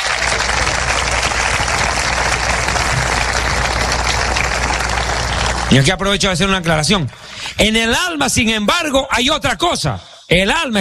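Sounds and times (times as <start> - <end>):
audience applauding loudly: 0.0 - 8.4
speech: 5.7 - 10.7.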